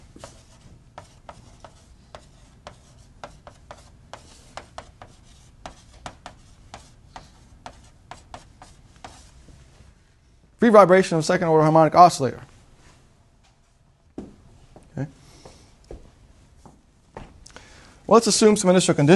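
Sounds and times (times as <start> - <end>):
writing on a board: 0.0 - 9.4
speech: 10.6 - 12.5, 18.1 - 19.1.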